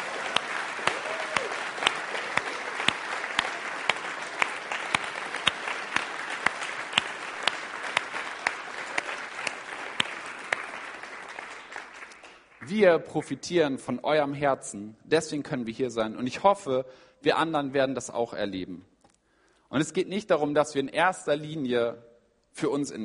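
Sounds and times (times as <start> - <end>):
audience applause: 0.0 - 12.7
speech: 12.8 - 18.9, 19.7 - 23.0.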